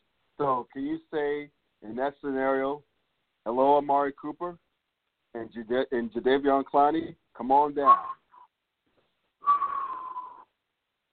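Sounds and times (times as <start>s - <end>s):
speech: 0.4s - 4.6s, 5.3s - 8.2s
person whistling in amazement: 7.9s - 8.5s, 9.4s - 10.5s.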